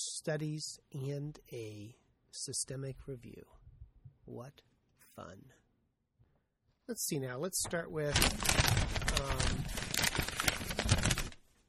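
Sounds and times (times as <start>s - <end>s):
speech: 0.0s - 3.7s, 4.3s - 5.6s, 6.9s - 10.0s
paper being handled: 7.6s - 11.6s.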